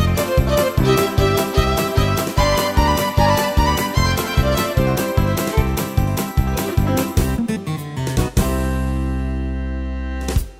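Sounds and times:
bluegrass country style accompaniment on Yamaha PSR-3000 keyboard: 0.0s - 10.5s.

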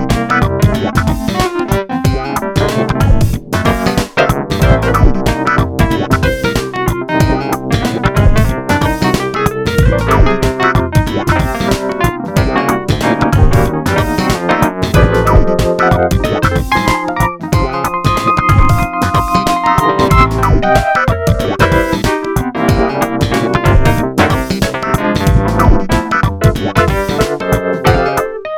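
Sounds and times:
funky Wurlitzer electric piano: 0.0s - 28.5s.

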